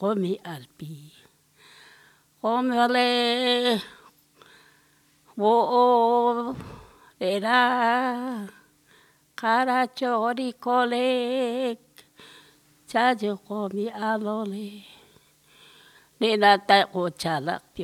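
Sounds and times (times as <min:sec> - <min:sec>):
lullabies sung in Pampa del Indio Chaco: 0:00.0 - 0:01.3, 0:02.4 - 0:04.1, 0:05.3 - 0:08.7, 0:09.4 - 0:12.2, 0:12.9 - 0:15.2, 0:16.2 - 0:17.8.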